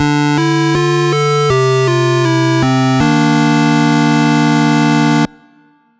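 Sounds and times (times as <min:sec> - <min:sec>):
8-bit game over jingle: 0:00.0 - 0:05.3.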